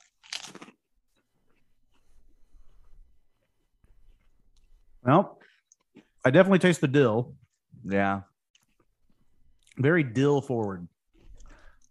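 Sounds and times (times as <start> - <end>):
crunching potato chips: 0.0 - 0.8
speech: 5.1 - 5.4, 6.2 - 8.3, 9.8 - 10.9.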